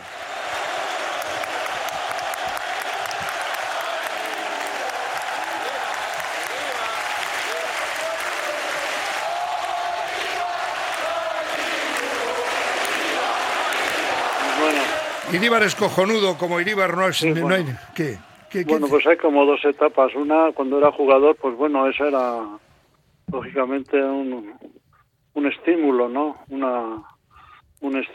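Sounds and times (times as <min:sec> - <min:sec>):
large stadium crowd roaring: 0:00.0 - 0:19.3
speech: 0:15.3 - 0:22.6, 0:23.3 - 0:24.6, 0:25.4 - 0:27.1, 0:27.8 - 0:28.1.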